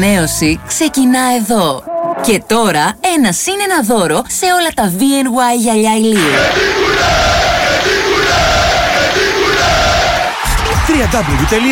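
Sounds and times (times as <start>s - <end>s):
speech: 0.0s - 7.3s, 11.0s - 11.7s
football stadium crowd chanting: 6.2s - 10.8s.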